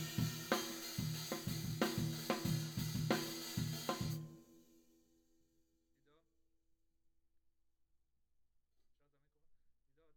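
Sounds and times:
tom drum: 0:00.0 - 0:04.5.

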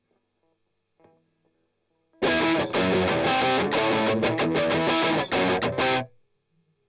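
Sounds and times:
strummed octaves: 0:02.2 - 0:06.1.

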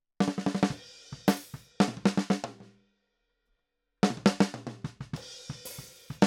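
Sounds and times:
snare drum: 0:00.2 - 0:02.6, 0:04.0 - 0:06.2.

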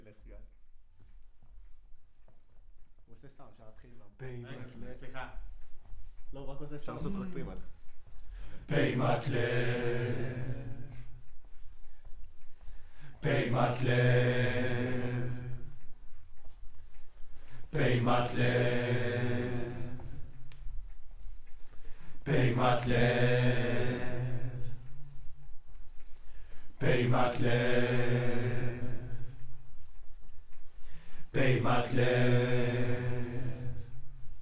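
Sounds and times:
choir singing: 0:08.6 - 0:11.2, 0:13.2 - 0:16.0, 0:17.5 - 0:20.6, 0:22.2 - 0:25.4, 0:26.7 - 0:29.6, 0:31.3 - 0:34.4.

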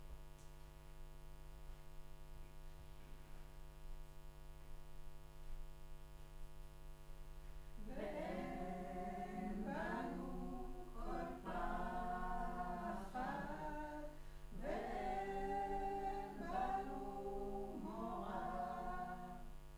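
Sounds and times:
choir singing in room: 0:07.8 - 0:19.6.

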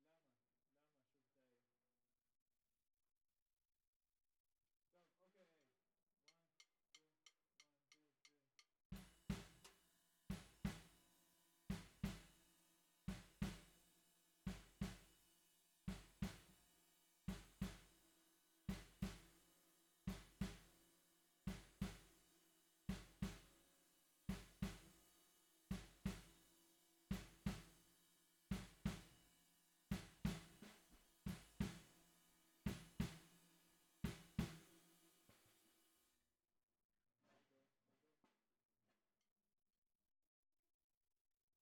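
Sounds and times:
bottom snare drum: 0:09.0 - 0:35.6.

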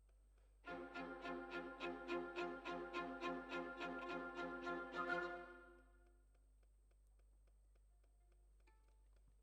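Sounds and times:
violins: 0:00.7 - 0:05.8.

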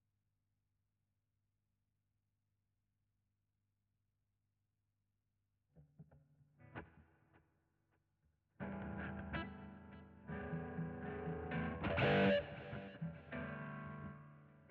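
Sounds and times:
guitar: 0:05.8 - 0:07.5, 0:08.6 - 0:14.6.

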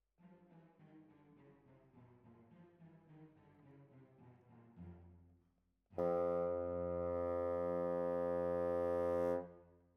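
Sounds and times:
bassoon: 0:06.0 - 0:09.6.

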